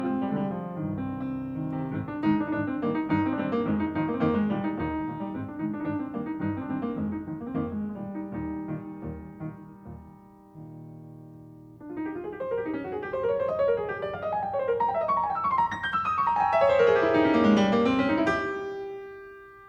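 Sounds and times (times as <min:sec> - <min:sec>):
piano trio playing: 0:00.0 - 0:19.6.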